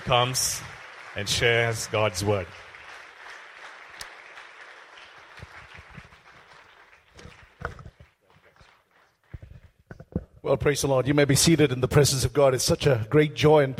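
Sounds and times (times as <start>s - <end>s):
church congregation in Bangalore applauding to welcome a pastor: 0.0s - 9.9s
speech: 0.1s - 2.7s, 10.5s - 13.7s.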